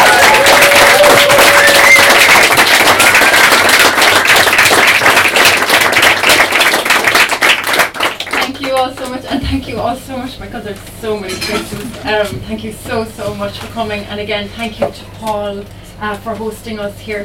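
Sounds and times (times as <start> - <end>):
audience applause: 0.0 - 9.2
speech: 9.8 - 17.2.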